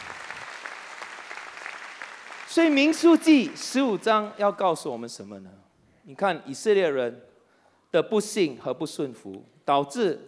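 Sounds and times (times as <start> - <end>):
audience clapping: 0.0 - 4.8
speech: 2.6 - 7.3, 7.9 - 10.2.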